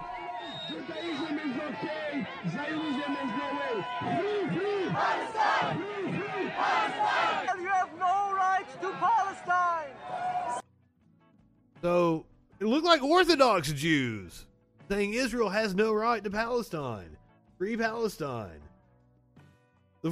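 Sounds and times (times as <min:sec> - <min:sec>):
crowd yelling at protesters: 0:00.0 - 0:10.6
speech: 0:00.8 - 0:09.5, 0:11.8 - 0:18.7.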